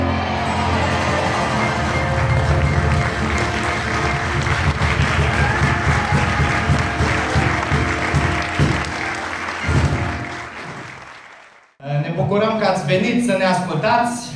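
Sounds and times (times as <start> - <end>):
audience applause after a song: 0.1 - 11.7
speech: 12.9 - 14.3.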